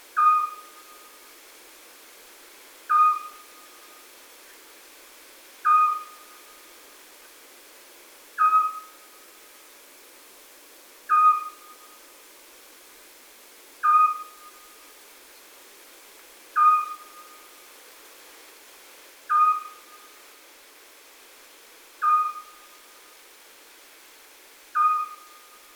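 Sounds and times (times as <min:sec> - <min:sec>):
Eurasian scops owl uttering a monotonous short whistle: 0:00.2 - 0:01.0, 0:02.9 - 0:03.4, 0:05.6 - 0:06.2, 0:08.4 - 0:09.0, 0:11.1 - 0:11.8, 0:13.8 - 0:14.6, 0:16.6 - 0:17.5, 0:19.3 - 0:20.0, 0:22.0 - 0:22.6, 0:24.8 - 0:25.5.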